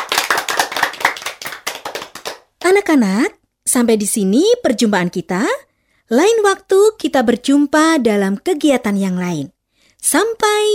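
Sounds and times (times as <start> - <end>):
teacher and young children clapping hands: 0.0 - 2.8
speech: 2.7 - 10.7.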